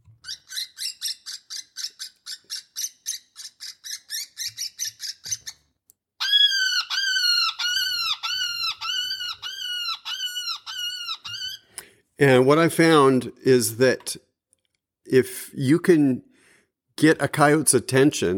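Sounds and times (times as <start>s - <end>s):
wounded woodpecker distress call: 0.2s - 5.6s, 6.2s - 11.7s
speech: 12.2s - 14.3s, 15.1s - 16.3s, 17.0s - 18.3s.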